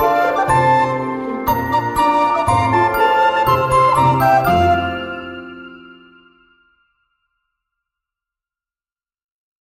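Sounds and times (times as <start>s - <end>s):
Christmas song: 0.0s - 7.1s.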